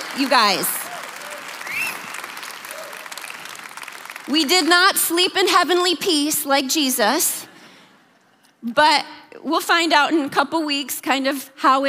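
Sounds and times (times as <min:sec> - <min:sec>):
audience hand clapping: 0:00.0 - 0:04.3
speech: 0:00.2 - 0:00.8, 0:04.3 - 0:07.5, 0:08.6 - 0:11.8.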